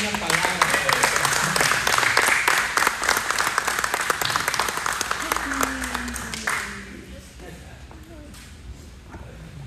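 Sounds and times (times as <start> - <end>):
audience applause: 0.0 - 7.1.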